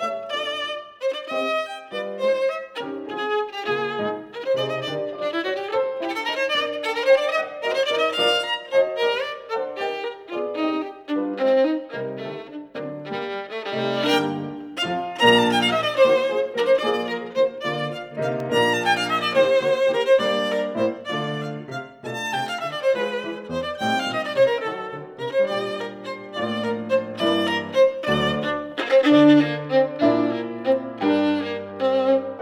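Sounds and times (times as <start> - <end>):
classical violin and piano: 0.0 - 32.4.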